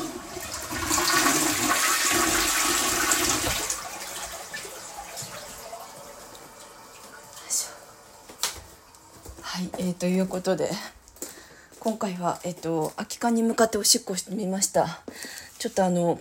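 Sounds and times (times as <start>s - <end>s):
toilet flushing: 0.0s - 9.2s
speech: 10.0s - 11.0s, 11.8s - 16.1s.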